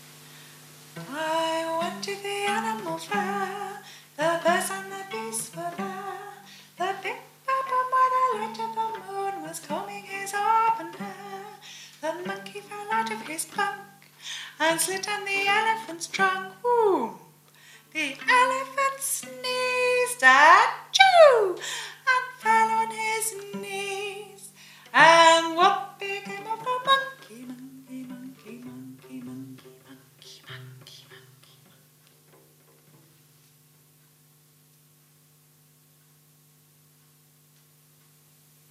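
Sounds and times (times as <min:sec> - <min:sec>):
person singing: 0:01.0 - 0:13.9, 0:14.5 - 0:17.2, 0:17.9 - 0:31.8.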